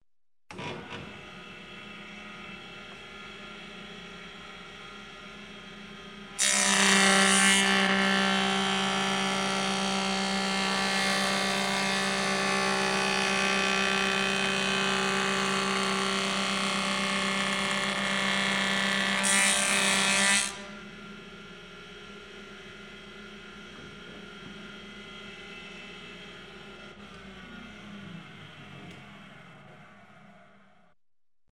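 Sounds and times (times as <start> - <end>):
circular saw blade spinning and cutting material: 6.4 - 20.9.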